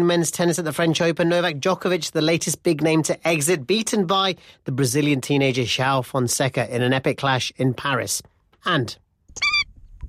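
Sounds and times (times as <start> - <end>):
speech: 0.0 - 9.5
endangered Indian skimmer call: 9.4 - 9.7.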